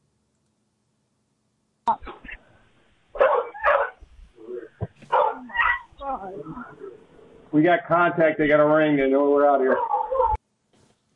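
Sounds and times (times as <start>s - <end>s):
dog barking: 3.2s - 4.0s, 5.1s - 5.9s, 9.7s - 10.4s
dog yipping and whining: 5.1s - 6.8s, 9.7s - 10.4s
speech: 7.5s - 9.9s.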